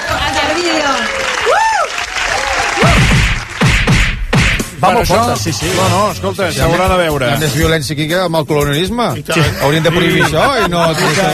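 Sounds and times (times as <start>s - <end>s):
applause: 0.0s - 3.9s
speech: 4.8s - 11.3s
laughter: 9.3s - 11.3s.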